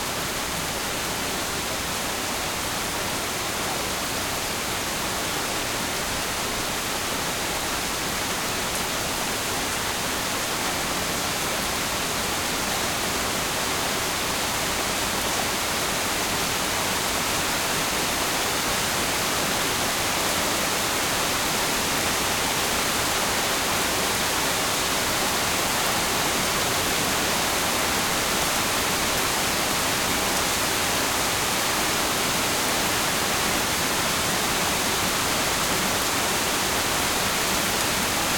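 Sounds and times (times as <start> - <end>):
calm rain at night in suburbs: 0.0 - 38.3.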